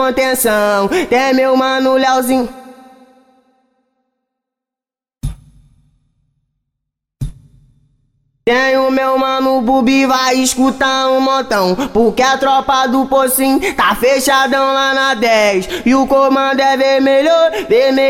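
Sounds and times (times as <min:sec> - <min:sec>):
a cappella singing: 0:00.0 - 0:03.4, 0:08.5 - 0:18.0.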